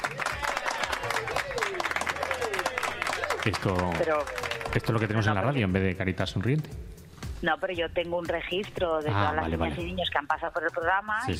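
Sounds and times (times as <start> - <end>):
applause: 0.0 - 5.5
speech: 3.4 - 6.8, 7.4 - 11.3.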